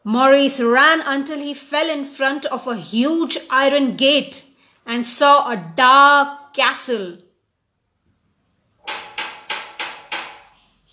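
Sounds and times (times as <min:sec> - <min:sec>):
speech: 0:00.0 - 0:07.2
knocking on a castle door: 0:08.9 - 0:10.4.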